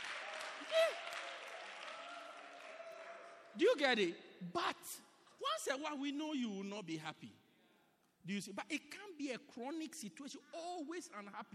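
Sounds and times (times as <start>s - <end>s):
audience applause: 0.0s - 3.8s
speech: 3.6s - 7.4s, 8.2s - 11.5s.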